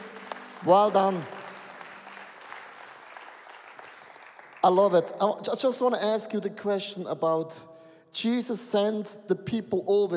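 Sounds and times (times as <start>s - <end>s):
audience applause: 0.0s - 4.9s
speech: 0.6s - 1.4s, 4.6s - 10.1s.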